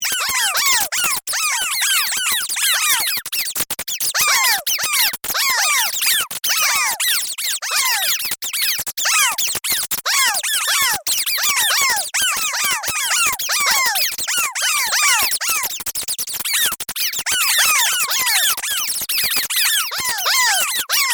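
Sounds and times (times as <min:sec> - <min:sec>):
rodents squealing: 0:00.0 - 0:21.1.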